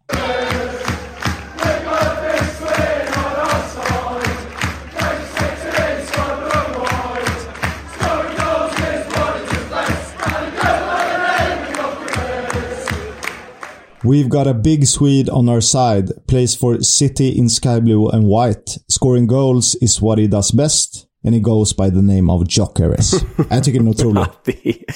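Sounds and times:
football supporters chanting to a pop song tune: 0:00.0 - 0:14.0
speech: 0:14.1 - 0:24.9
laughter: 0:23.0 - 0:24.9.

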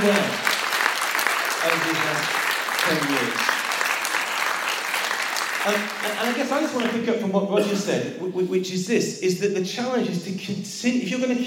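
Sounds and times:
crowd applause: 0:00.0 - 0:07.0
speech: 0:01.6 - 0:03.5, 0:05.6 - 0:11.4.

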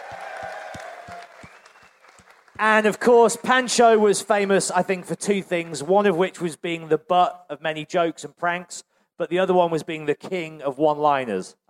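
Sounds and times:
audience round of applause: 0:00.0 - 0:03.0
speech: 0:02.6 - 0:11.6.

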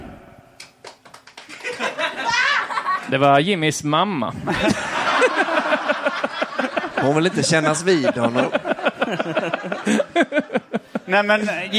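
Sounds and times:
live audience applause: 0:00.8 - 0:02.5
live audience laughing: 0:01.5 - 0:03.1, 0:04.4 - 0:11.7
speech: 0:03.1 - 0:05.4, 0:07.0 - 0:11.7.

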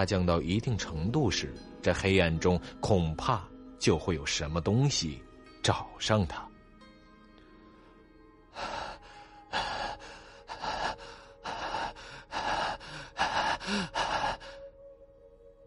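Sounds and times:
speech: 0:00.0 - 0:06.5
heavy breathing: 0:07.8 - 0:14.7.

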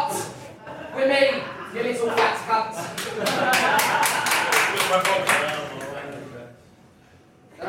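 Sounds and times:
laughter: 0:00.1 - 0:06.1
audience clapping: 0:02.9 - 0:06.3.

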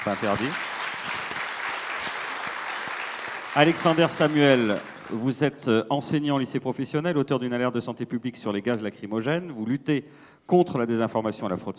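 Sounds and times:
speech: 0:00.0 - 0:00.7, 0:03.6 - 0:11.7
audience applause: 0:00.0 - 0:05.5.

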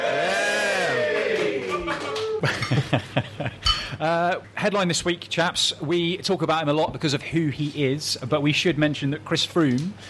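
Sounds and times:
live audience cheering: 0:00.0 - 0:02.4
claps and chuckles: 0:01.4 - 0:03.7
speech: 0:02.4 - 0:10.0.

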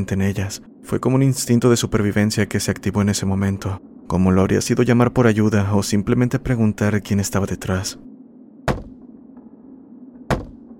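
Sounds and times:
speech: 0:00.0 - 0:08.1
knocking and pounding on a door: 0:08.7 - 0:09.0, 0:10.3 - 0:10.7.

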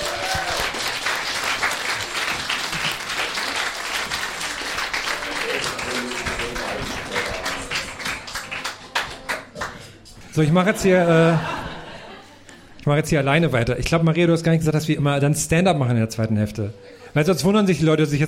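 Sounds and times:
audience applause: 0:00.0 - 0:09.9
speech: 0:10.4 - 0:11.6, 0:12.8 - 0:18.2
laughter: 0:10.4 - 0:12.8.

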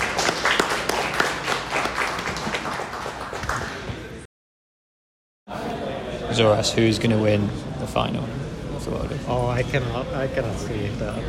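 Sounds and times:
audience applause for finalists: 0:00.0 - 0:04.2
speech: 0:06.3 - 0:11.2.

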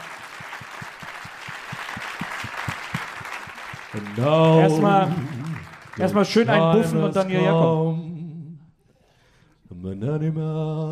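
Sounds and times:
audience applause: 0:00.0 - 0:07.2
speech: 0:03.9 - 0:05.4, 0:06.0 - 0:08.0, 0:10.0 - 0:10.9.

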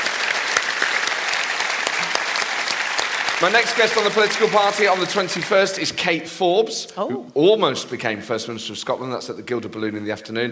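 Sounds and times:
sustained applause from a large audience: 0:00.0 - 0:05.8
speech: 0:03.4 - 0:10.5.

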